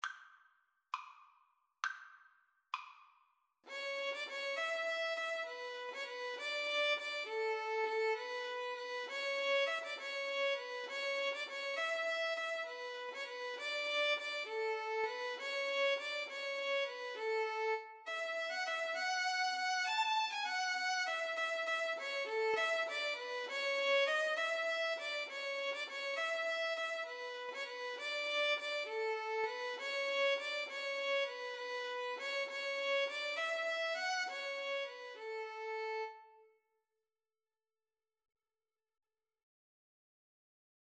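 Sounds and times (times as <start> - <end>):
violins playing a sonata: 3.7 - 36.2.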